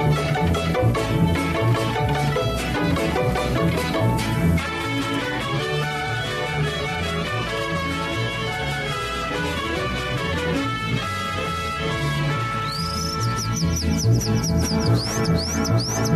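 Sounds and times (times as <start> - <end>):
music: 0.0 - 16.1
calandra lark singing: 12.5 - 16.1.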